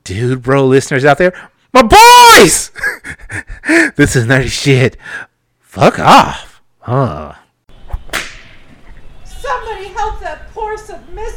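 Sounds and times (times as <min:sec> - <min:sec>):
speech: 0:00.1 - 0:07.4
flogger whip crack: 0:07.9 - 0:08.6.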